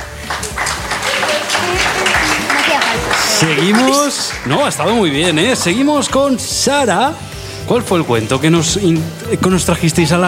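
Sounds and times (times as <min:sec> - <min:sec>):
applause: 0:00.0 - 0:06.2
speech: 0:03.4 - 0:10.2.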